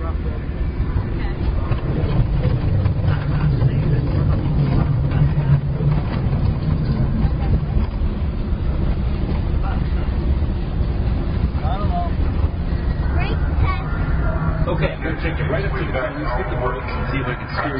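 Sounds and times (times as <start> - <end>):
rattling road noise from a rough road: 0.0 - 17.7
test vehicle engine droning on a rough road: 0.0 - 17.7.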